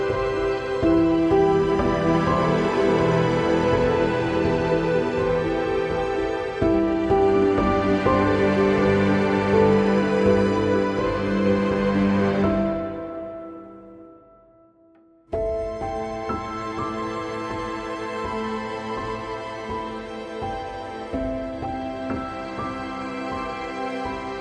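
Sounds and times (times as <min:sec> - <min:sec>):
strings: 0:00.0 - 0:14.1, 0:15.3 - 0:24.4
piano: 0:00.0 - 0:24.4.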